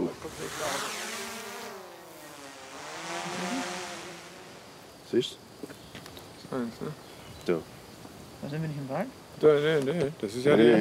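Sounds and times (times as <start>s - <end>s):
drone motor buzzing: 0.0s - 4.9s
speech: 5.1s - 5.8s, 6.5s - 7.8s, 8.4s - 10.7s.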